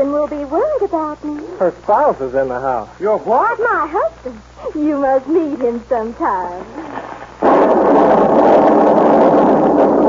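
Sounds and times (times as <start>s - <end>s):
speech: 0.3s - 6.9s
lightning striking a cloud: 7.4s - 10.0s.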